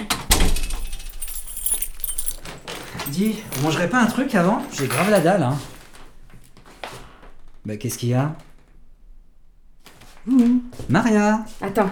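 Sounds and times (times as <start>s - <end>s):
key grinding and turning in a stiff door lock: 0.3s - 5.5s
jangling metal: 0.3s - 5.8s
speech: 3.1s - 5.7s, 7.7s - 8.5s, 10.3s - 11.9s.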